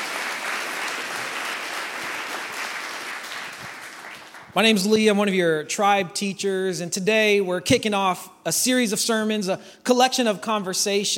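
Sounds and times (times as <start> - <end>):
church congregation applauding: 0.0 - 4.8
speech: 4.6 - 11.1.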